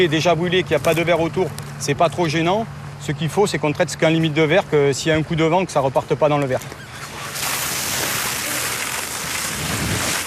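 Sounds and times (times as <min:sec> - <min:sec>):
speech: 0:00.0 - 0:06.8
fire hose spraying foam onto a tree trunk: 0:07.0 - 0:10.2.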